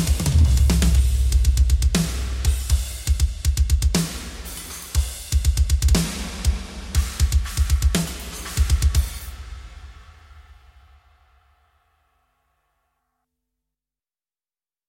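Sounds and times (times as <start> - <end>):
drum kit playing: 0.0 - 10.4.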